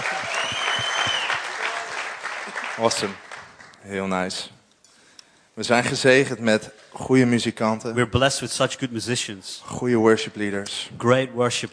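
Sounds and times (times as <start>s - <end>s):
audience applauding the band: 0.0s - 3.8s
speech: 2.8s - 3.2s, 3.8s - 4.6s, 5.6s - 11.7s.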